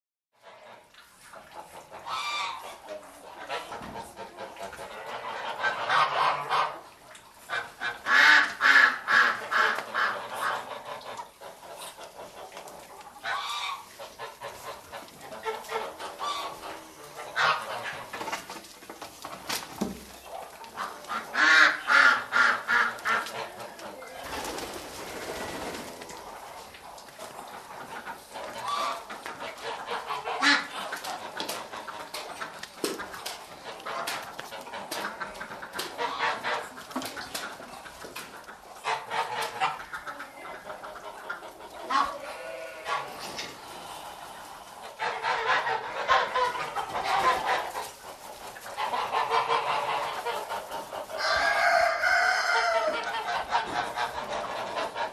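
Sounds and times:
geese: 0.4s - 18.6s, 19.3s - 55.1s
chickens: 0.4s - 55.1s
ducks: 0.4s - 55.1s.

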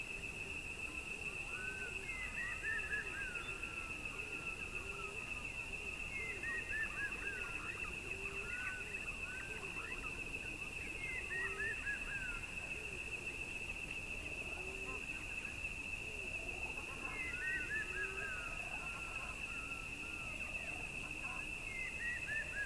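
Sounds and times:
calm evening crickets chirping: 0.0s - 22.6s.

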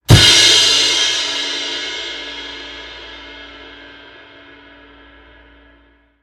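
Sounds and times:
drum cymbals: 0.1s - 4.4s.

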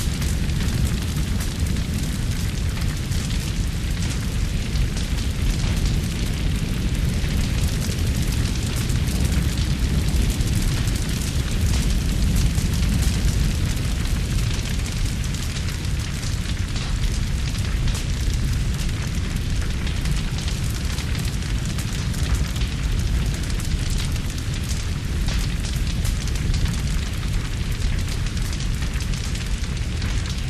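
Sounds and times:
burning trees crackling in a forest fire: 0.0s - 30.4s
forest fire roaring: 0.0s - 30.4s.

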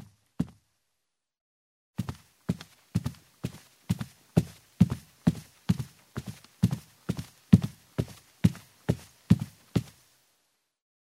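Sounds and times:
barefoot steps on carpeted wooden stairs: 0.0s - 0.6s, 2.0s - 10.0s.

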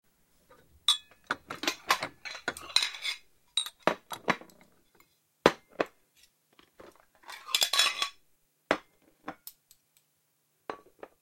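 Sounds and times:
dishes clinking: 0.8s - 4.4s, 6.8s - 9.4s.

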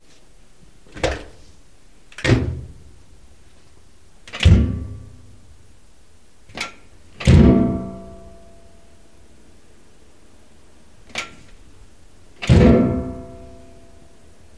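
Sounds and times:
washing machine door opening and closing: 0.9s - 1.4s, 2.2s - 2.7s, 4.3s - 5.0s, 6.5s - 7.7s, 11.1s - 11.5s, 12.4s - 13.1s.

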